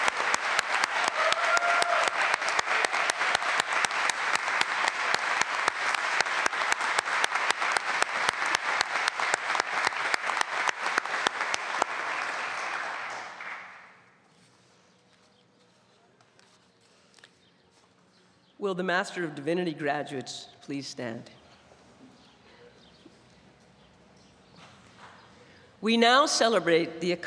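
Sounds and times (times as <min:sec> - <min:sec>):
large audience applause for graduates: 0:00.0 - 0:14.0
speech: 0:18.7 - 0:21.4, 0:25.8 - 0:27.2.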